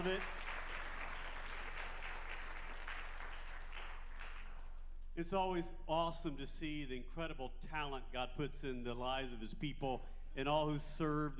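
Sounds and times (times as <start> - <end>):
speech: 0.0 - 0.4, 5.2 - 11.3
audience applause: 0.0 - 4.8.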